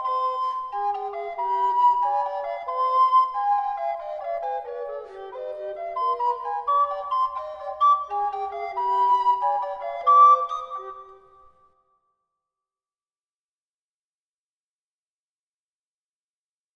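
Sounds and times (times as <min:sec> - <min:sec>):
two-voice etude for treble recorder: 0:00.0 - 0:11.6.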